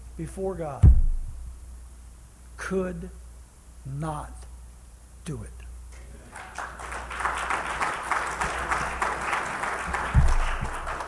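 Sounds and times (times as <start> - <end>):
speech: 0.2 - 1.1, 2.6 - 3.2, 3.8 - 4.5, 5.3 - 5.6
thump: 0.8 - 1.5, 10.2 - 10.7
audience applauding: 6.2 - 11.0.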